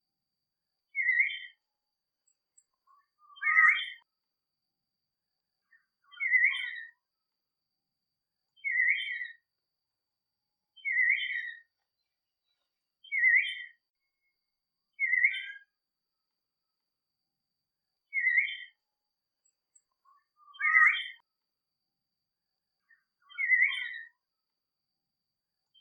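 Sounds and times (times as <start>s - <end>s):
person singing: 0.9s - 1.6s, 2.2s - 4.1s, 5.7s - 7.0s, 8.5s - 9.5s, 10.8s - 15.8s, 18.0s - 18.8s, 19.4s - 21.2s, 22.9s - 24.2s.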